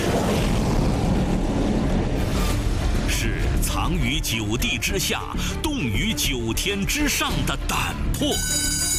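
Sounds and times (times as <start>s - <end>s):
J-45 fighter jet engine roaring during takeoff: 0.0s - 3.1s
speech: 3.9s - 8.8s.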